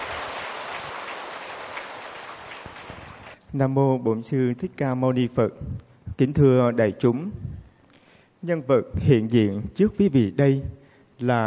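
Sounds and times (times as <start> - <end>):
audience applause at Hoằng Pháp temple lecture hall: 0.0 - 3.4
speech: 3.5 - 7.5, 8.4 - 11.4.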